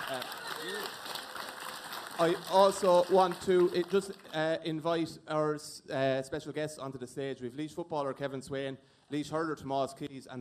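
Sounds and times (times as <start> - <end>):
audience applause: 0.0 - 4.4
speech: 2.2 - 10.3.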